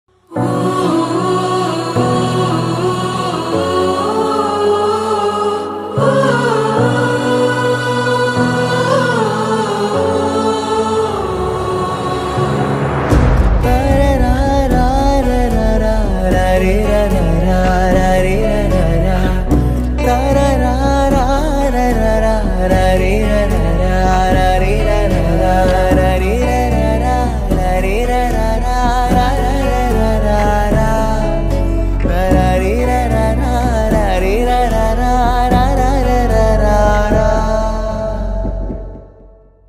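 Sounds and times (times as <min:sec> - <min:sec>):
sad background music: 0:00.1 - 0:39.6.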